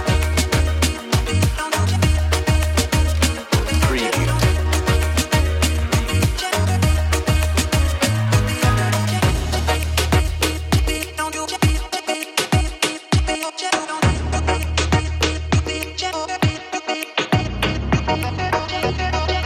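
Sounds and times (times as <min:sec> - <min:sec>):
Jamaican style music: 0:00.0 - 0:19.4.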